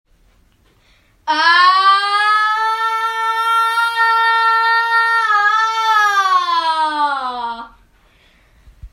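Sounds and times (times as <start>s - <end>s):
person screaming: 1.3s - 7.8s.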